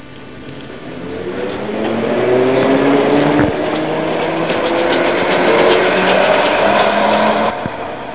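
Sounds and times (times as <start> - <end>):
tram: 0.6 - 8.1.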